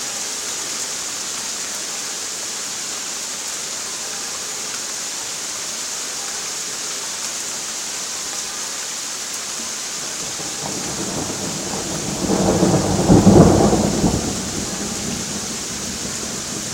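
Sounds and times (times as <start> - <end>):
rain: 0.0 - 16.7
thunder: 10.2 - 16.7.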